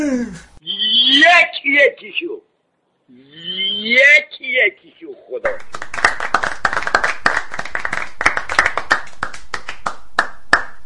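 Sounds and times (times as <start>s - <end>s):
speech: 0.0s - 0.5s, 1.2s - 2.5s, 3.1s - 6.4s
small child clapping hands: 5.5s - 10.8s.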